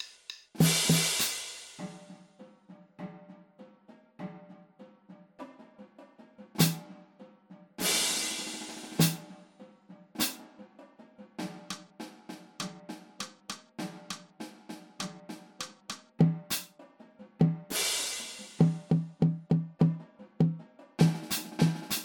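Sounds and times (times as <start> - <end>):
drum kit: 0.0 - 2.2, 6.6 - 6.9, 7.8 - 9.4, 10.2 - 10.4, 11.4 - 16.8, 17.4 - 22.0.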